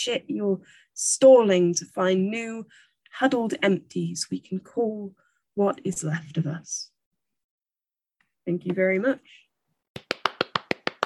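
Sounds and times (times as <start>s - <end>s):
speech: 0.0s - 6.9s, 8.5s - 9.4s
hand claps: 9.9s - 11.0s.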